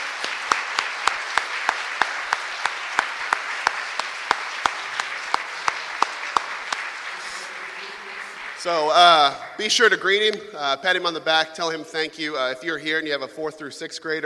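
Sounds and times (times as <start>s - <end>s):
round of applause: 0.0s - 10.2s
speech: 8.6s - 14.2s.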